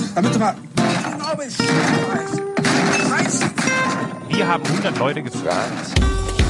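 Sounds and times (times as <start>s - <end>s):
speech: 0.2s - 6.3s
table being smashed: 0.8s - 4.1s.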